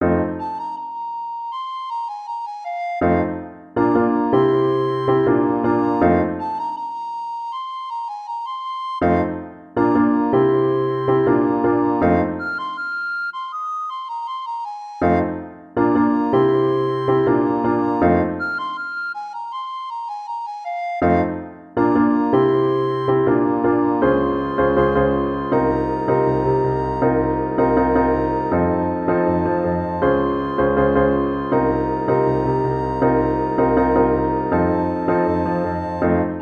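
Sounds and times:
recorder melody: 0.0s - 36.4s.

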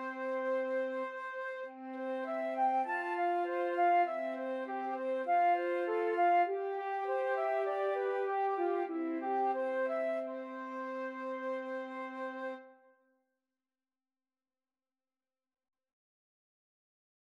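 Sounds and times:
flute trio playing: 0.0s - 12.8s.

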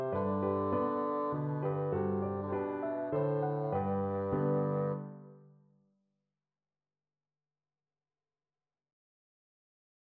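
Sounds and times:
bassoon lullaby: 0.0s - 5.5s.

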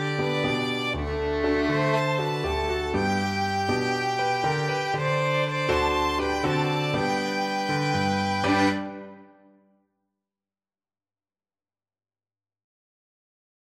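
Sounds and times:
violin duet: 0.0s - 9.3s.

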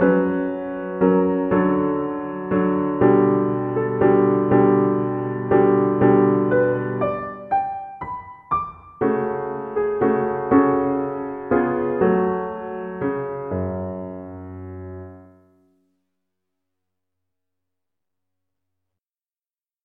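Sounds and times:
piano concerto slow movement: 0.0s - 15.5s.

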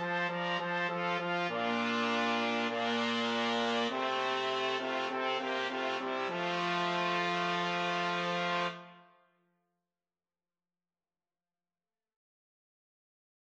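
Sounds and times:
trombone: 0.0s - 8.9s
two trumpets: 0.8s - 9.0s.

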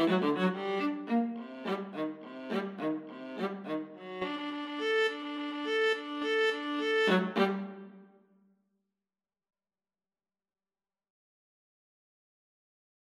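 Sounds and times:
viola duet: 0.0s - 8.1s.

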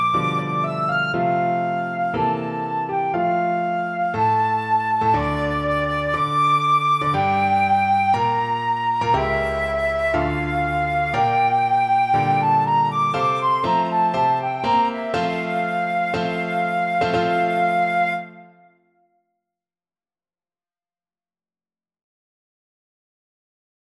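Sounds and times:
flute playing a romance: 0.0s - 19.1s.

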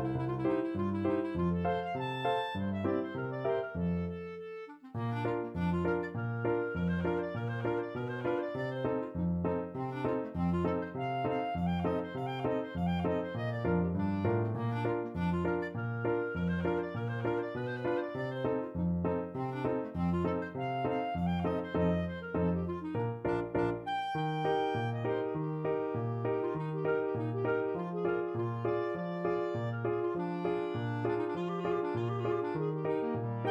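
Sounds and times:
clarinet duet playing a polka: 0.0s - 33.5s
piano: 0.0s - 33.5s.

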